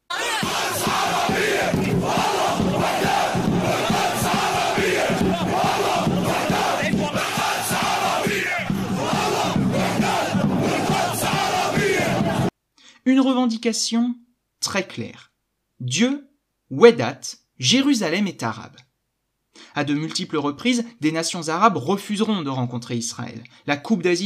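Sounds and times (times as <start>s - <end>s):
football supporters chanting in stadium: 0.0s - 12.5s
speech: 13.0s - 18.8s, 19.6s - 24.2s.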